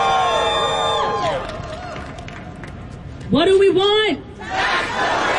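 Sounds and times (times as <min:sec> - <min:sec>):
audience cheering and whooping: 0:00.0 - 0:02.3
speech: 0:03.3 - 0:05.2.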